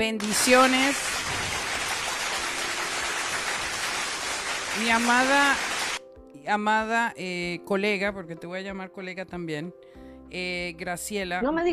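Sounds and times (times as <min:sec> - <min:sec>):
speech: 0:00.0 - 0:01.4, 0:04.8 - 0:05.7, 0:06.4 - 0:11.7
applause from a crowd: 0:00.2 - 0:06.0.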